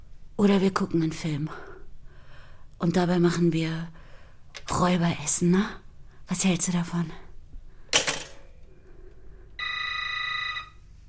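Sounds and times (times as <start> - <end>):
speech: 0.4 - 1.7, 2.8 - 4.0, 4.6 - 7.2
telephone ringing: 9.6 - 10.8.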